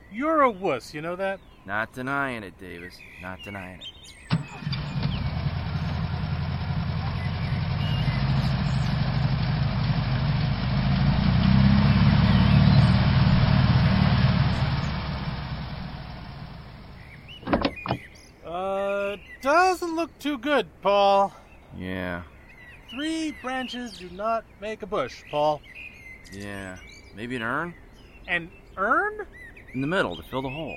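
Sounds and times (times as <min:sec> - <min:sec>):
speech: 0:00.1 - 0:05.0, 0:19.7 - 0:22.3, 0:22.9 - 0:30.7
car engine idling: 0:04.3 - 0:18.0
mechanical clunks: 0:17.4 - 0:18.1.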